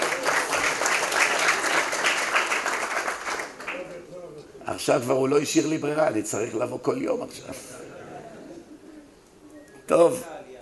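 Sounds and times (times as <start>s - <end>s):
audience applause: 0.0s - 4.0s
speech: 4.7s - 7.8s, 9.9s - 10.4s
laughter: 7.5s - 9.1s.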